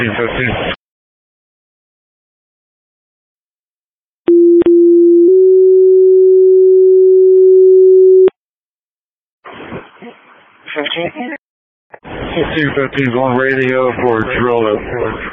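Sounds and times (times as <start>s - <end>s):
speech: 0.0s - 0.8s, 12.6s - 15.3s
fire department pager test tone: 4.3s - 8.3s.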